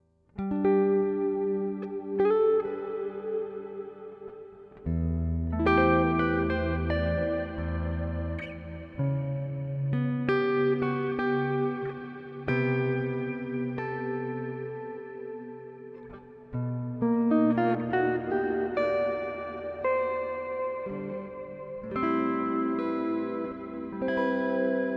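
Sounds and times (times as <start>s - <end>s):
improvised music: 0.4s - 24.9s.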